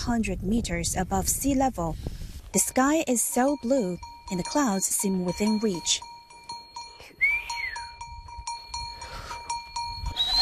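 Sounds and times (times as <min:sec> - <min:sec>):
speech: 0:00.0 - 0:06.1
goat or sheep bells ringing: 0:02.6 - 0:10.4
sliding human whistles: 0:07.1 - 0:08.0, 0:10.1 - 0:10.4.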